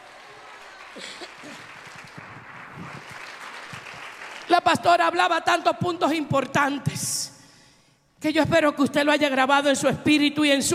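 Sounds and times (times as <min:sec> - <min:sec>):
audience applause: 0:00.0 - 0:04.5
speech: 0:01.0 - 0:03.1, 0:04.5 - 0:07.3, 0:08.2 - 0:10.7.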